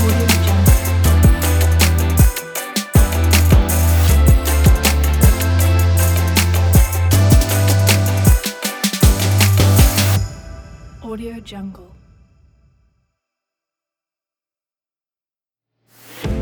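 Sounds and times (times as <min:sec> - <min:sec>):
smooth soul music: 0:00.0 - 0:10.4.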